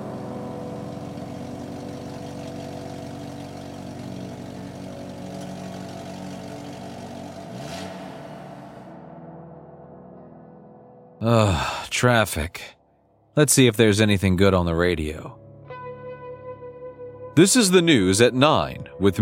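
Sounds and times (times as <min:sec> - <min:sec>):
car engine driving off: 0:00.0 - 0:09.0
speech: 0:11.2 - 0:12.8, 0:13.4 - 0:15.4, 0:17.4 - 0:19.2.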